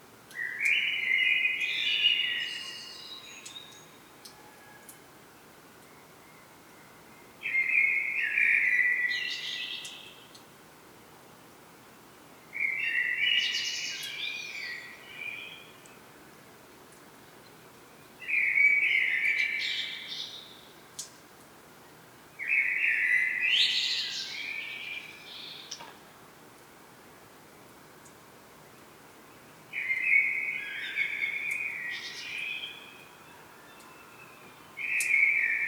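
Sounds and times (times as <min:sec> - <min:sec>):
common blackbird song: 0:00.3 - 0:05.0, 0:05.8 - 0:10.4, 0:12.6 - 0:16.0, 0:17.2 - 0:21.1, 0:22.4 - 0:25.9, 0:29.3 - 0:35.6.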